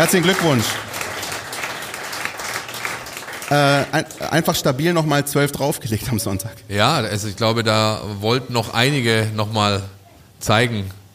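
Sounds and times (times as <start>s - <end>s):
speech: 0.0s - 1.0s, 3.5s - 11.0s
applause for the VfB women's football team: 0.0s - 5.0s.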